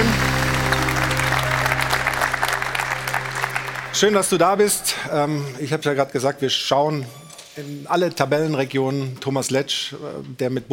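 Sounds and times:
music playing: 0.0s - 5.0s
studio audience applause: 0.0s - 5.3s
speech: 4.0s - 10.7s.

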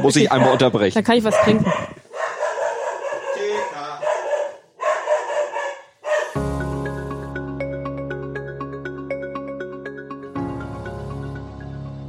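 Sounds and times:
speech: 0.0s - 2.0s
dog barking: 0.0s - 6.4s.

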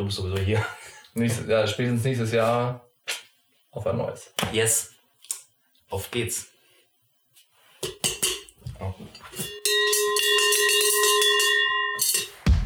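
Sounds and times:
speech: 0.0s - 4.9s, 5.9s - 6.5s
cowbell Schelle clanking and ringing: 7.8s - 12.5s.

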